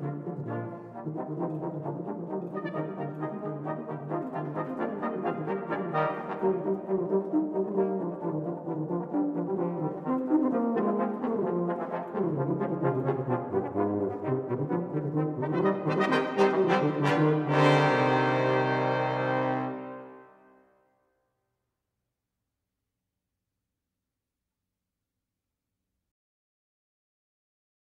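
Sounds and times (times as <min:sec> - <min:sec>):
baroque dance piece: 0:00.0 - 0:20.4.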